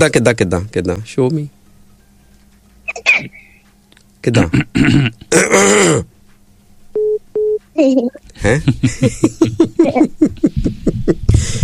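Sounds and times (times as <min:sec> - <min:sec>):
speech: 0:00.0 - 0:01.6, 0:02.9 - 0:03.4, 0:04.2 - 0:06.1, 0:07.8 - 0:11.6
person coughing: 0:02.9 - 0:03.4, 0:04.4 - 0:06.1
laughter: 0:08.4 - 0:11.6.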